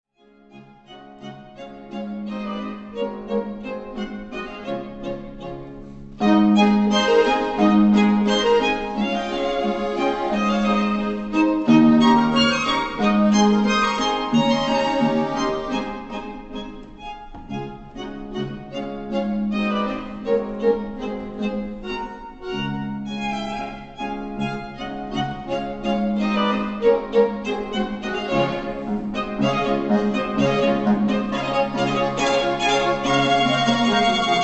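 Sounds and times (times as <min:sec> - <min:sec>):
Schrammel polka music: 0:00.5 - 0:34.4.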